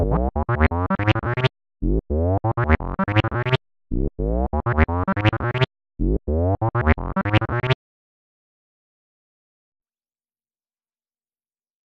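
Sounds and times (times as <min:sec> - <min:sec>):
acid bassline: 0:00.0 - 0:07.8.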